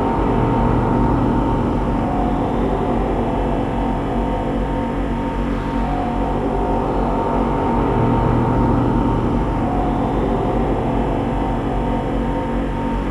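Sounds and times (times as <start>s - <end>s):
dark mechanical drone with reverb: 0.0s - 13.1s.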